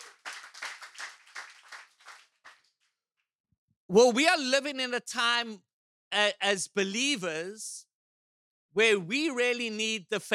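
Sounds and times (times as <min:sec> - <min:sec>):
audience clapping: 0:00.0 - 0:02.8
speech: 0:03.9 - 0:07.8, 0:08.8 - 0:10.3.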